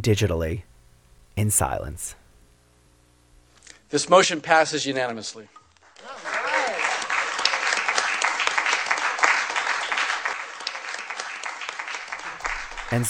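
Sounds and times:
speech: 0.0s - 0.7s, 1.4s - 2.2s, 3.9s - 6.2s
small audience applauding: 5.8s - 13.0s.

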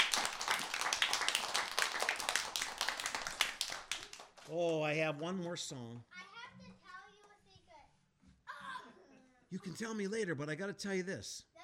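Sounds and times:
hands clapping: 0.0s - 5.4s
speech: 4.5s - 6.2s, 9.5s - 11.5s.

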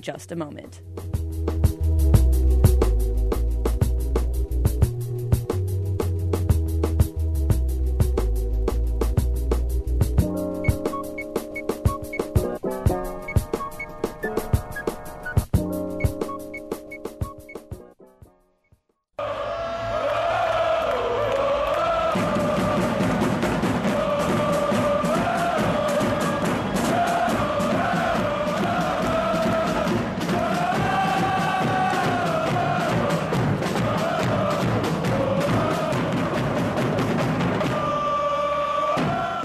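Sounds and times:
music: 0.0s - 39.4s
soccer supporters' section crowd cheering and chanting: 19.2s - 39.4s.

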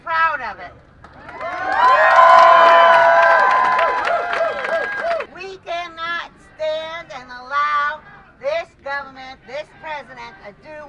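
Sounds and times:
protest crowd clapping: 1.0s - 5.3s
large protest crowd cheering and shouting: 1.3s - 5.3s.

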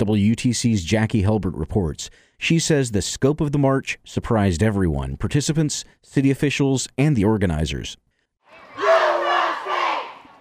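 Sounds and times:
speech: 0.0s - 8.0s
excited crowd shouting and cheering at a women's rally in Coolidge Park, Chattanooga: 8.5s - 10.3s.

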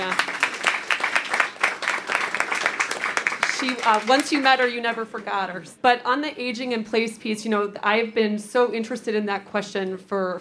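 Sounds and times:
audience applause: 0.0s - 4.8s
speech: 3.6s - 10.3s.

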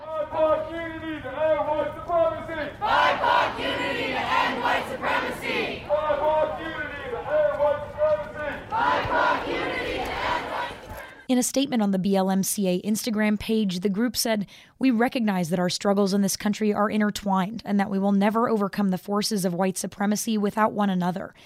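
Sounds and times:
protest crowd chanting call-and-response while marching: 0.0s - 11.1s
speech: 0.4s - 5.6s, 11.3s - 21.4s.

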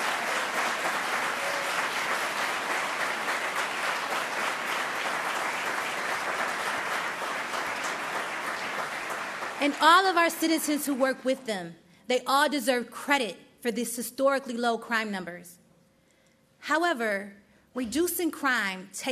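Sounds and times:
audience applause: 0.0s - 10.2s
speech: 9.6s - 15.6s, 16.6s - 19.0s.

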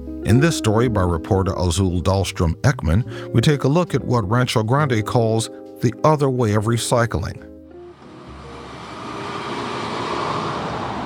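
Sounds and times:
speech: 0.2s - 7.5s
weekday-morning commuter traffic at Cesar Chavez and Bryant: 7.7s - 11.0s.

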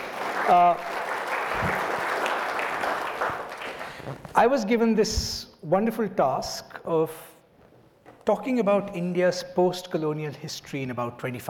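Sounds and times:
audience applause: 0.0s - 4.2s
speech: 0.5s - 0.9s, 1.5s - 1.8s, 4.4s - 7.3s, 8.2s - 11.4s.

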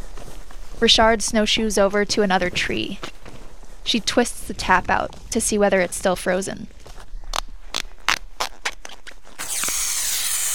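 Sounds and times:
speech: 0.8s - 3.1s, 3.9s - 6.8s
vacuum pump sucking maple sap: 9.4s - 10.5s.

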